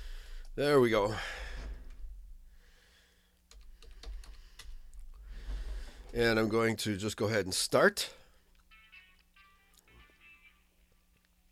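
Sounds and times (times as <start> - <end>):
speech: 0.6 - 1.4, 6.1 - 8.2
computer keyboard typing: 3.5 - 5.1.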